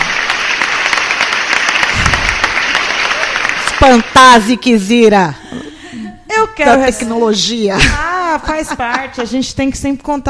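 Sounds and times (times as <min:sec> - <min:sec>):
applause sound effect: 0:00.0 - 0:04.6
speech: 0:03.8 - 0:05.6, 0:06.4 - 0:10.2.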